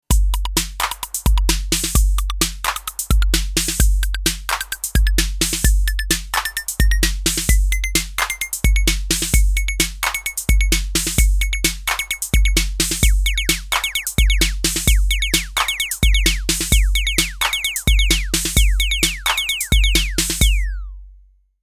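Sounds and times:
Roland TR-08 drum machine mix: 0.0s - 20.9s.

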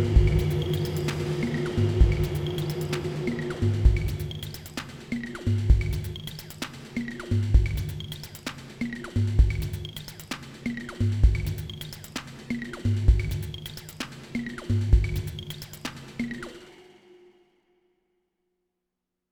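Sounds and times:
drum machine: 0.0s - 16.8s.

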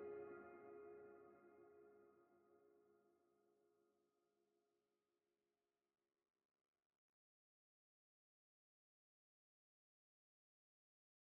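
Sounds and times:
piano through Blackhole VST: 0.0s - 2.3s.

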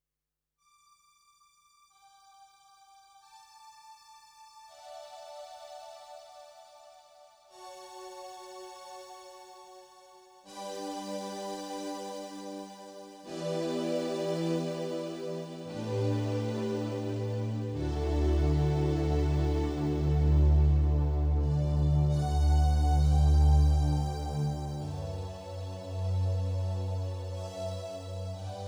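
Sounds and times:
strings: 10.5s - 28.6s.

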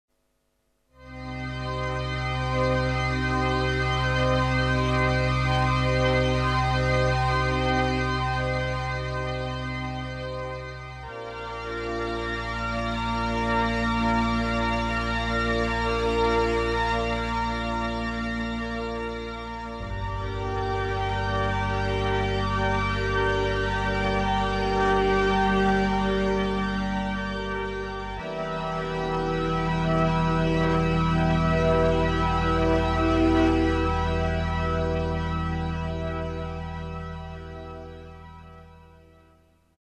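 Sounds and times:
Korg Trident synth strings: 1.0s - 38.8s.

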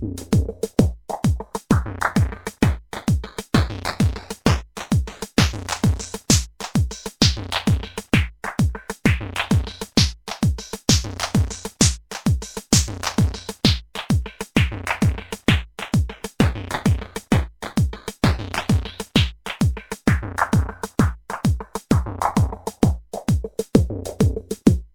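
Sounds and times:
TR8 lo-fi delay loop without kick and hi-hat: 0.2s - 24.9s.

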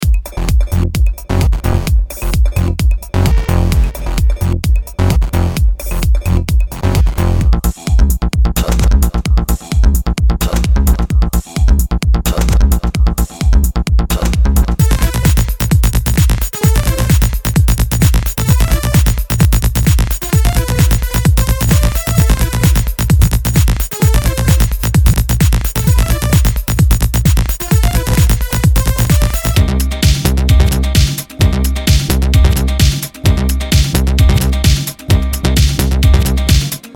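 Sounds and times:
music loops: 0.0s - 36.9s.

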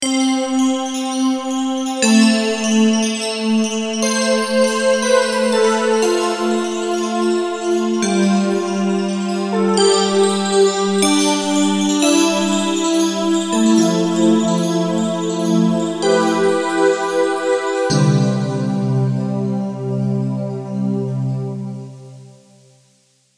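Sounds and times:
JD-800 model expansion synthesizer: 0.0s - 22.7s.

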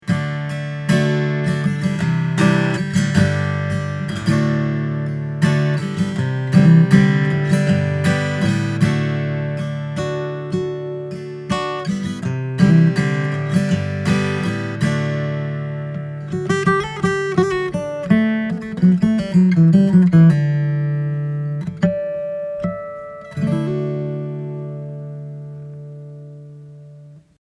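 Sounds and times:
Alvarez MGA66 ESHB acoustic guitar with UST pickup: 0.0s - 27.3s.

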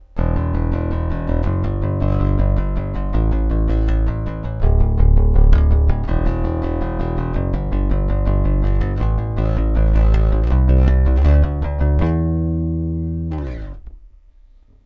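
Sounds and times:
electric guitar on active neck pickup: 0.2s - 14.0s.

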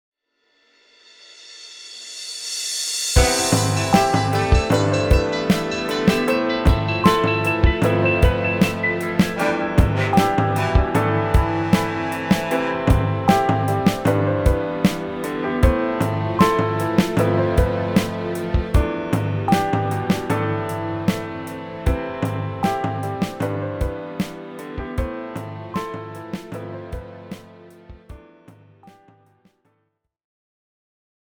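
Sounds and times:
ambient hip hop music: 3.2s - 28.0s.

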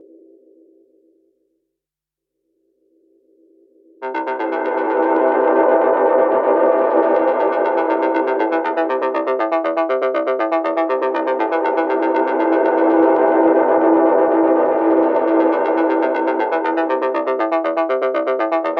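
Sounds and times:
Moogerfooger effect ebb and flow flux: 4.0s - 18.7s.

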